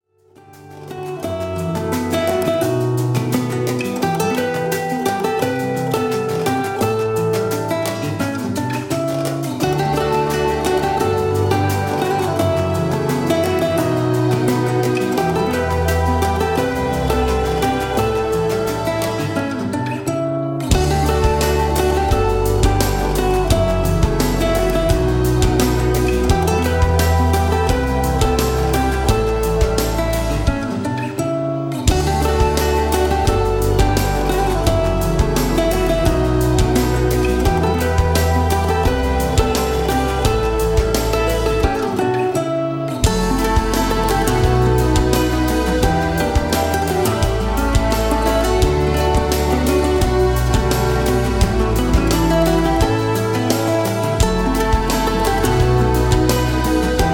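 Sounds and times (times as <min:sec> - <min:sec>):
lounge music: 0:00.1 - 0:57.1.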